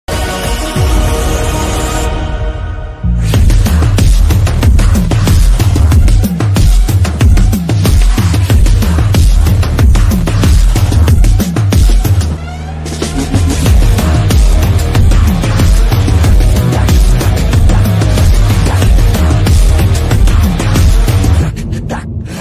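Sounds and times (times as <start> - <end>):
bass boosted background music ringtone: 0.1 - 22.3.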